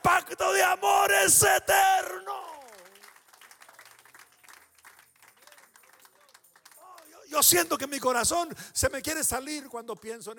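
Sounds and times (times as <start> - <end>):
speech: 0.7 - 2.2, 7.4 - 10.3
crowd applauding: 2.2 - 7.4.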